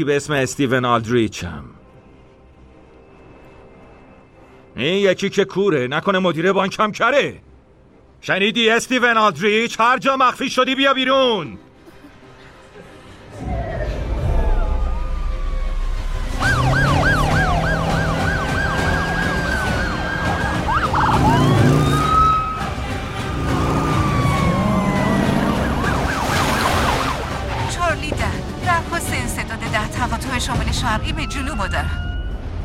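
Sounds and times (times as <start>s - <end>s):
speech: 0.0s - 1.8s, 4.8s - 7.5s, 8.2s - 11.7s, 30.0s - 32.1s
police car siren: 13.5s - 28.0s, 30.6s - 32.6s
traffic noise: 16.0s - 30.8s.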